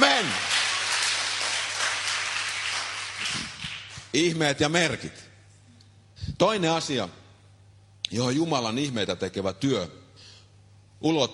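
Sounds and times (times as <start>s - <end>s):
audience applause: 0.0s - 4.1s
speech: 4.2s - 5.2s, 6.4s - 7.2s, 8.1s - 10.0s, 11.0s - 11.3s.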